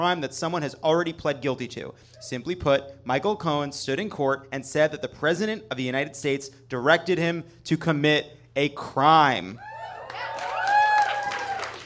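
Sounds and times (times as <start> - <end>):
speech: 0.0 - 10.3
crowd cheering with whoops and yells: 9.6 - 11.8
dense clapping: 10.0 - 11.8.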